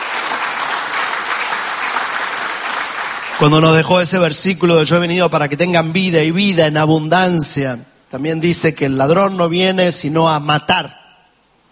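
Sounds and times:
audience applause: 0.0s - 3.9s
speech: 3.4s - 11.0s.

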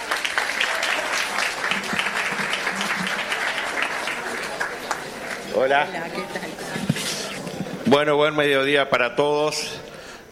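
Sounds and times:
audience applause: 0.0s - 7.6s
speech: 5.6s - 6.9s, 7.9s - 9.9s.

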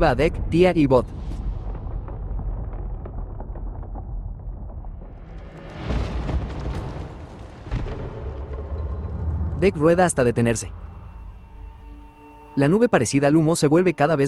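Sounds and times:
speech: 0.0s - 1.2s, 9.6s - 10.8s, 12.6s - 14.2s
deep rumble: 0.0s - 14.2s
chalice exploding with shattering spray of debris: 0.4s - 11.1s.

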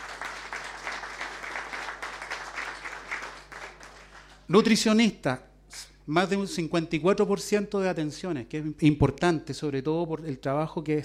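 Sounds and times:
applause: 0.0s - 4.7s
speech: 4.5s - 11.0s.

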